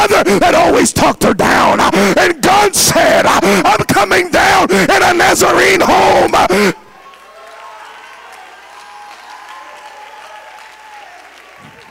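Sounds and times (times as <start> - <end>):
speech: 0.0 - 6.9
audience clapping hands: 7.0 - 11.8.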